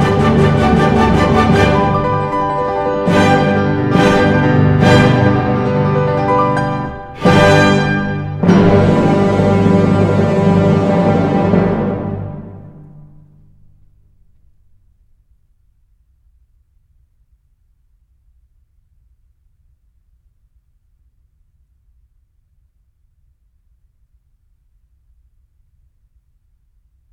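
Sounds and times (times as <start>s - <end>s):
piano concerto allegro: 0.0s - 14.6s.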